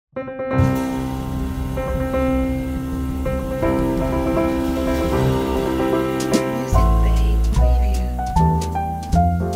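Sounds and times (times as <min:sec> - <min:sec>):
wedding march music: 0:00.6 - 0:09.4.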